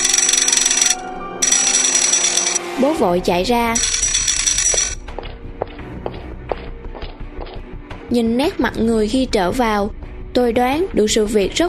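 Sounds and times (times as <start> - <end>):
loud harsh electric doorbell ringing: 0.0 - 2.6, 3.8 - 5.0
speech: 2.8 - 3.9, 8.1 - 11.6.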